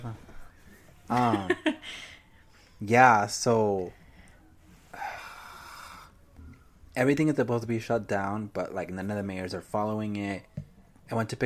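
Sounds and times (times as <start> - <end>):
speech: 0.0 - 0.3, 1.1 - 2.1, 2.8 - 4.0, 7.0 - 11.4
heavy breathing: 3.9 - 6.3.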